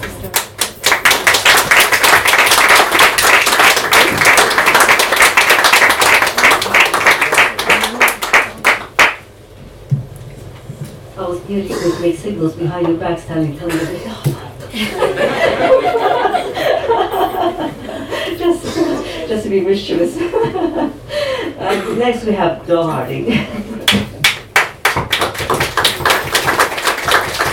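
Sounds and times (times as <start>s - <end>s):
audience round of applause: 0.0s - 9.2s, 24.2s - 27.5s
speech: 11.5s - 16.1s, 19.5s - 21.0s, 21.7s - 23.6s
laughter: 14.7s - 19.3s, 20.2s - 21.0s.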